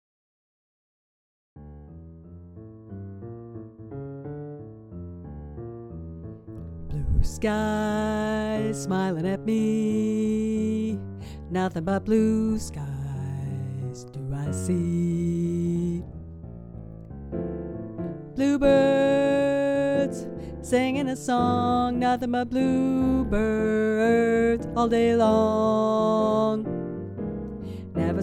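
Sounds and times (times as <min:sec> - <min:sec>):
tenor singing: 0:06.9 - 0:16.1, 0:18.3 - 0:26.8, 0:28.0 - 0:28.2.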